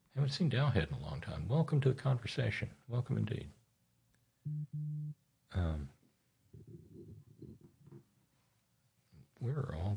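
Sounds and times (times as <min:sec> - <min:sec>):
speech: 0:00.2 - 0:03.6, 0:05.5 - 0:06.0, 0:09.4 - 0:09.9
electronic hum: 0:04.5 - 0:05.2.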